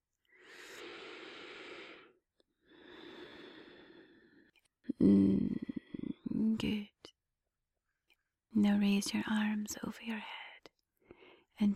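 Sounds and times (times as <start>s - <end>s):
full deep inhale and slow exhale during a guided breathing exercise: 0.3s - 4.5s
speech: 5.0s - 5.6s, 6.5s - 7.2s, 8.6s - 10.4s, 11.6s - 11.7s.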